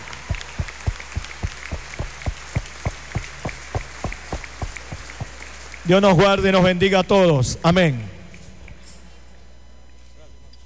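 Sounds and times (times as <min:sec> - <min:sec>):
applause: 0:00.0 - 0:06.8
speech: 0:05.9 - 0:08.1.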